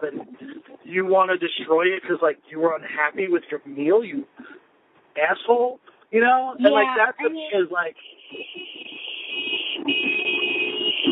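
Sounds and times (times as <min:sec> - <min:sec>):
speech: 0:00.0 - 0:04.6, 0:05.2 - 0:08.8
car horn honking in traffic: 0:07.0 - 0:11.1.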